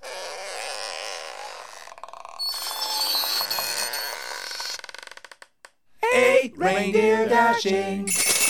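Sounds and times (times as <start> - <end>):
doors creaking: 2.3 - 5.8
speech: 6.2 - 8.3.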